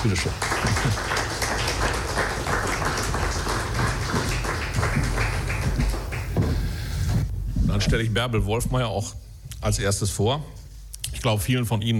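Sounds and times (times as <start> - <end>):
speech: 0.0 - 2.0, 7.8 - 10.6, 11.2 - 11.9
audience applause: 0.0 - 6.5.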